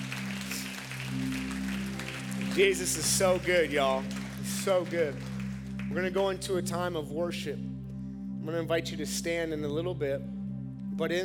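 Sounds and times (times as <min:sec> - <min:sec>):
audience clapping: 0:00.0 - 0:06.5
sustained low keyboard chords: 0:00.0 - 0:11.2
speech: 0:02.6 - 0:05.3, 0:05.9 - 0:07.7, 0:08.4 - 0:10.3, 0:11.0 - 0:11.2.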